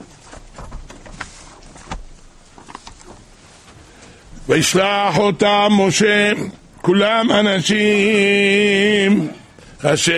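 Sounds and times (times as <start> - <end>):
opening a volume of the Holy Zohar: 0.0 - 4.2
speech: 4.5 - 10.1.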